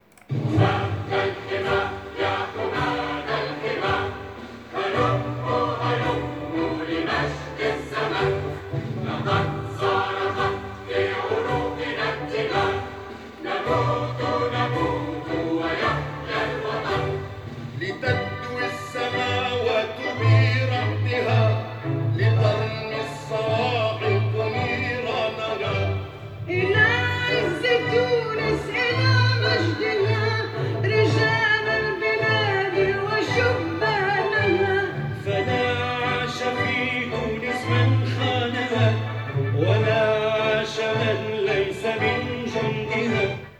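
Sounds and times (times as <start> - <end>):
reworked national anthem: 0.0 - 43.5.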